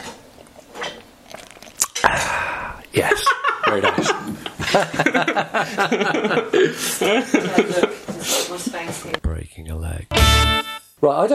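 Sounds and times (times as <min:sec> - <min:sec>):
slurp of an alcoholic drink: 0:00.4 - 0:02.9
laughter: 0:03.0 - 0:09.0
speech: 0:03.7 - 0:11.3.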